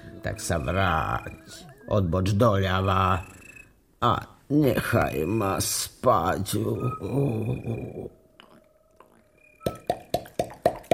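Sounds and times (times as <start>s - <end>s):
speech: 0.2s - 3.4s, 4.0s - 8.2s
woodpecker knocking: 9.6s - 10.9s.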